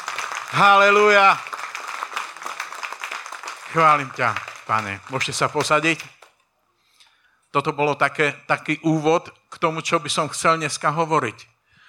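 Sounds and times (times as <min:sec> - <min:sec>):
crowd applauding: 0:00.0 - 0:06.3
speech: 0:00.5 - 0:01.5, 0:03.7 - 0:06.2, 0:07.6 - 0:11.5.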